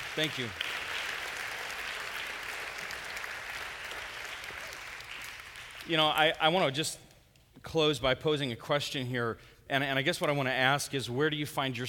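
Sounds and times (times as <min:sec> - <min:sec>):
audience applause: 0:00.0 - 0:05.9
speech: 0:00.2 - 0:00.7, 0:05.9 - 0:07.0, 0:07.6 - 0:11.8.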